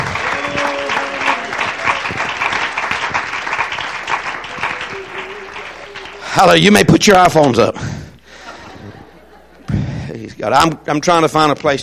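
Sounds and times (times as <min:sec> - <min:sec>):
audience clapping hands: 0:00.0 - 0:07.6
speech: 0:06.4 - 0:07.9, 0:10.4 - 0:11.8
laughter: 0:08.2 - 0:10.1.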